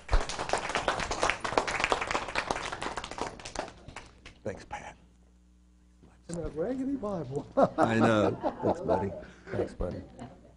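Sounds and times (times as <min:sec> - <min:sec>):
audience applauding to welcome a speaker: 0:00.0 - 0:04.2
speech: 0:04.4 - 0:04.8, 0:06.6 - 0:10.2
laughter: 0:07.4 - 0:10.5.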